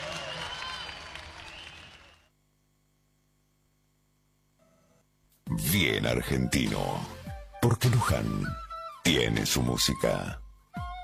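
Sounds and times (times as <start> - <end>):
crowd applause: 0.0 - 2.3
speech: 5.7 - 10.4.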